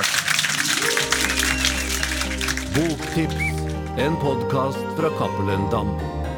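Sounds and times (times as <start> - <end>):
audience applause: 0.0 - 4.3
speech: 2.8 - 6.2.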